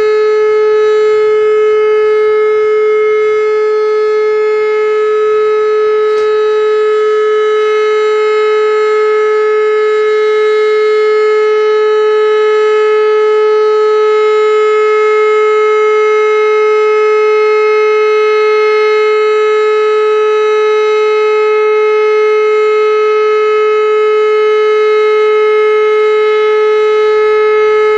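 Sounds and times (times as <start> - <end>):
warning siren: 0.0 - 27.9.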